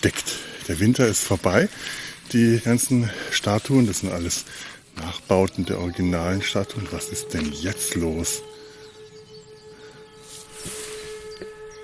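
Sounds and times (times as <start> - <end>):
speech: 0.0 - 8.6
hissy background: 0.0 - 11.8
sirens wailing: 3.5 - 11.8.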